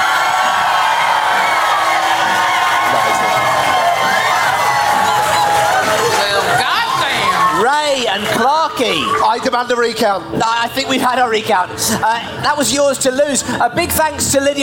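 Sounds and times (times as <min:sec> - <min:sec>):
audience applauding: 0:00.0 - 0:09.2
speech: 0:08.4 - 0:14.6.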